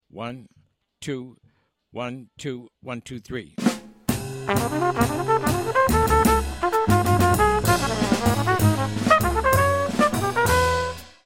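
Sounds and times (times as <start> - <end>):
fast piano backing track: 4.5 - 10.9.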